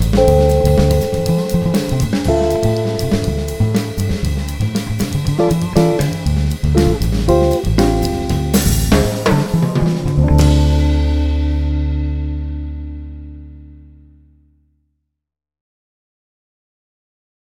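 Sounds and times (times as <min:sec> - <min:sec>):
musical vamp: 0:00.0 - 0:13.8.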